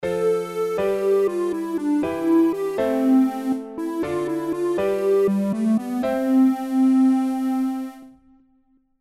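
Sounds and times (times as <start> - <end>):
musical chord: 0.2 - 8.2.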